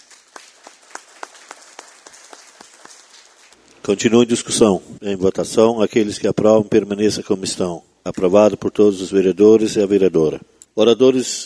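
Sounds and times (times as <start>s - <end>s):
round of applause in council chamber: 0.0s - 3.6s
speech: 3.9s - 11.4s.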